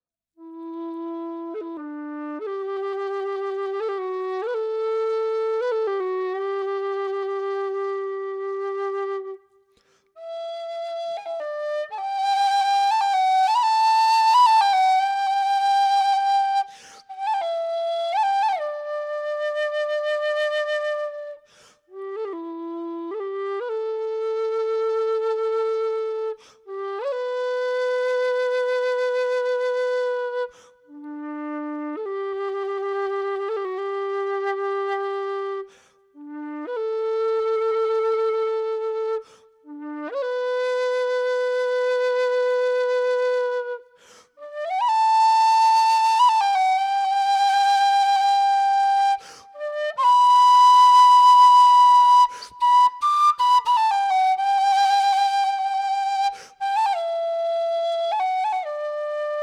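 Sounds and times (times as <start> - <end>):
low D whistle: 0.4 - 59.4.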